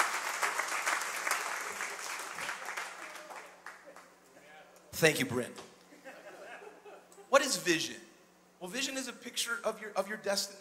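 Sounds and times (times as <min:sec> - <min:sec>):
clapping: 0:00.0 - 0:04.1
speech: 0:05.0 - 0:05.7, 0:07.6 - 0:10.6
laughter: 0:05.9 - 0:07.3.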